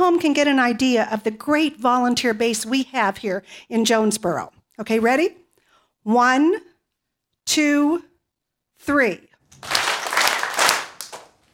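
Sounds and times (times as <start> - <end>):
speech: 0.0 - 5.4, 6.0 - 6.7, 7.5 - 8.1, 8.8 - 9.8
crowd at a volunteer gathering in Jonesboro clapping on cue: 9.5 - 11.4.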